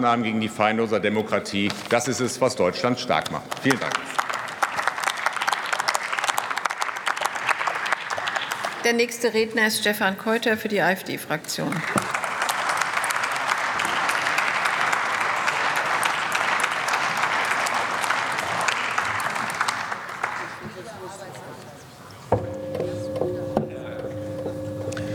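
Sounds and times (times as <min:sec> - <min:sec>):
speech: 0:00.0 - 0:04.2, 0:08.9 - 0:12.1
applause in a parliamentary chamber: 0:03.1 - 0:09.1, 0:11.7 - 0:21.2
quieter tonal hums: 0:22.3 - 0:25.1.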